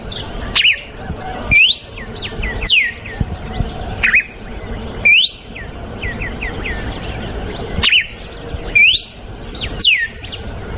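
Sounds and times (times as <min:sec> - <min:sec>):
red-cowled cardinal giving loud whistles: 0:00.1 - 0:03.3, 0:05.0 - 0:06.9, 0:07.8 - 0:10.7.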